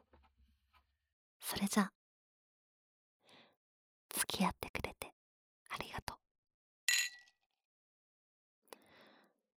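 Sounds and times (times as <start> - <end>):
speech: 1.5 - 2.0, 4.4 - 4.8
glasses clinking in a toast: 6.9 - 7.3.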